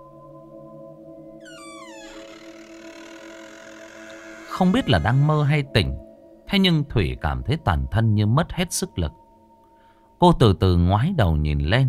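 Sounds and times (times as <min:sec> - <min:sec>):
room door creaking open: 0:01.4 - 0:05.5
speech: 0:04.6 - 0:09.2, 0:10.2 - 0:11.8.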